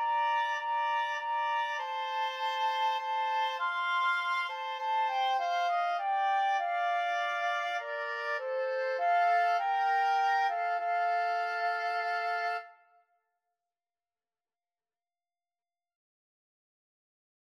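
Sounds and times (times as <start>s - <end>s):
clarinet in a woodwind trio: 0.0s - 13.0s
oboe in a woodwind trio: 0.0s - 13.0s
flute in a woodwind trio: 0.0s - 13.1s.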